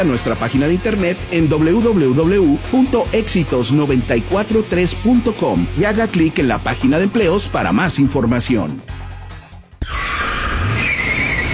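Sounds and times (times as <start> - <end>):
speech: 0.0 - 9.0
car tires skidding before a crash: 9.8 - 11.5.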